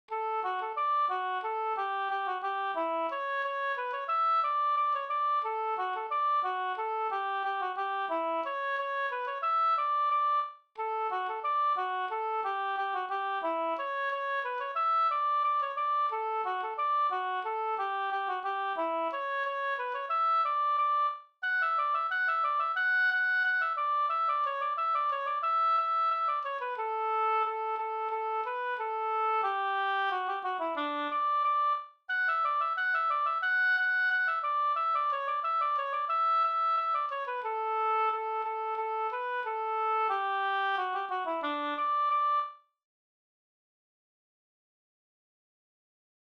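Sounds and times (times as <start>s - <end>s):
polka in two-beat time: 0.1s - 42.6s.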